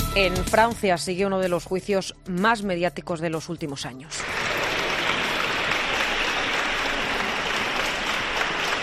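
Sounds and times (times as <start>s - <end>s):
speech: 0.1s - 4.4s
crowd applause greeting an arrival: 4.2s - 8.8s.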